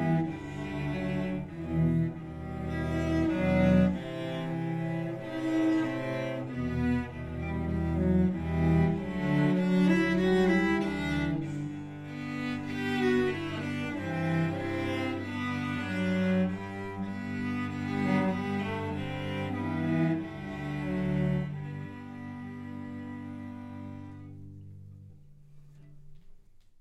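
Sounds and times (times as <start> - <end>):
cello choir playing an etude: 0.0 - 26.3.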